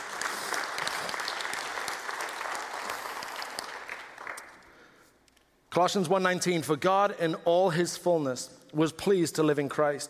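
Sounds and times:
audience applause: 0.0s - 4.6s
speech: 5.8s - 10.0s.

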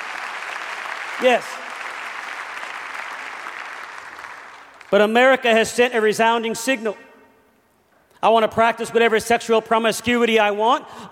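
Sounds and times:
audience clapping hands: 0.0s - 5.4s
speech: 1.2s - 1.6s, 4.9s - 7.1s, 8.2s - 11.1s.

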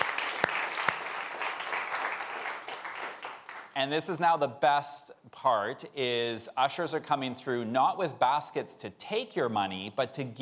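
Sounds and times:
applause: 0.0s - 3.8s
speech: 3.8s - 10.4s.

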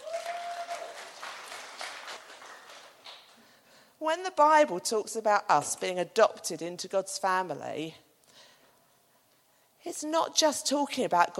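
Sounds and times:
audience clapping: 0.0s - 3.5s
speech: 4.0s - 8.0s, 9.8s - 11.3s.

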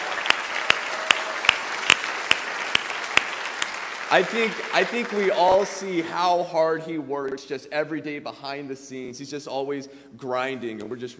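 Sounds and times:
audience round of applause: 0.0s - 6.2s
speech: 4.1s - 11.1s.

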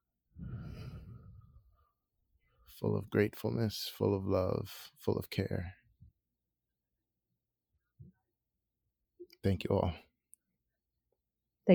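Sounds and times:
group exhaling slowly: 0.4s - 1.6s
speech: 2.8s - 5.8s, 9.4s - 10.0s.

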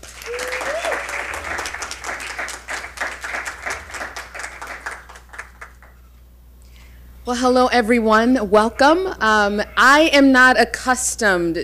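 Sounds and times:
audience applause welcoming a lecturer: 0.0s - 6.0s
speech: 7.3s - 11.6s.

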